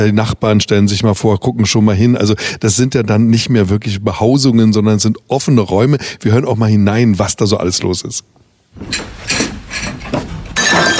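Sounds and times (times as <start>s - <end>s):
speech: 0.0s - 10.3s
dishes clattering while unpacking: 8.8s - 10.9s
crockery breaking with glassy shattering: 8.9s - 10.9s.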